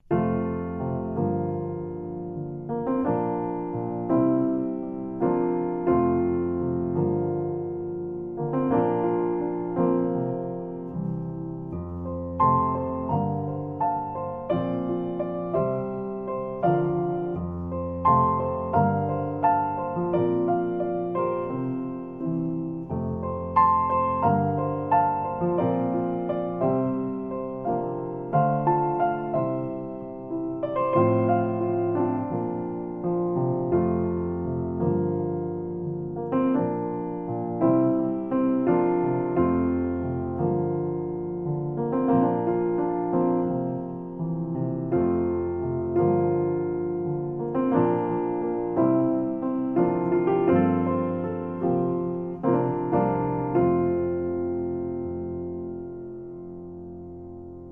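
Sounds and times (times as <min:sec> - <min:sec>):
solo piano: 0:00.0 - 0:57.7.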